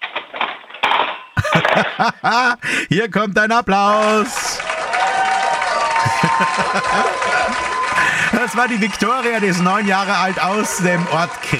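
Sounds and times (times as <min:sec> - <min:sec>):
forks dropped into a kitchen drawer: 0:00.0 - 0:02.1
laughter: 0:01.4 - 0:11.5
speech: 0:01.8 - 0:04.7, 0:06.0 - 0:11.5.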